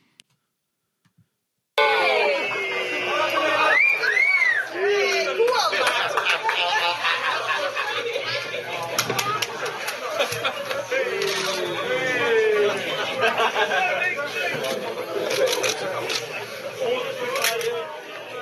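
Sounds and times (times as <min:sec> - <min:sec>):
crowd chatter: 0:01.8 - 0:18.4
laughter: 0:02.0 - 0:16.7
journalists clapping: 0:02.1 - 0:07.7, 0:08.8 - 0:11.7
journalists whistling: 0:03.6 - 0:04.7.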